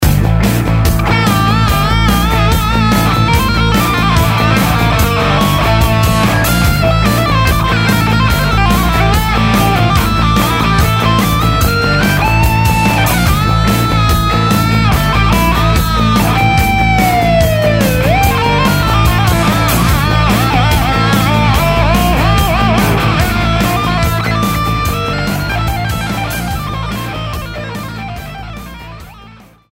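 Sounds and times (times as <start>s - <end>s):
music in the Phrygian mode: 0.0s - 29.7s.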